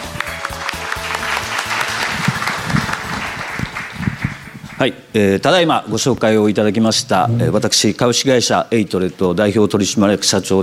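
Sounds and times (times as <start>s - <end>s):
audience applause: 0.0s - 4.9s
speech: 4.8s - 10.6s.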